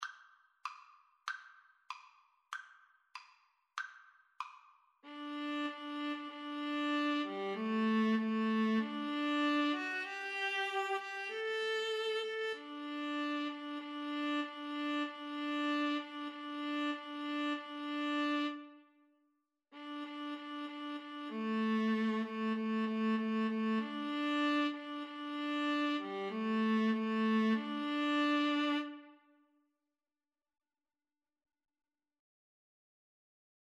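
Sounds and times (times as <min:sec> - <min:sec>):
violin and viola duet: 0:05.0 - 0:18.9, 0:19.8 - 0:29.3.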